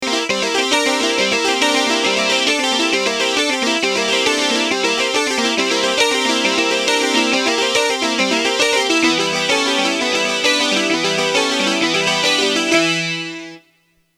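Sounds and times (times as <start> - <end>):
RMI keyboard with light chorus effect: 0.0 - 13.6.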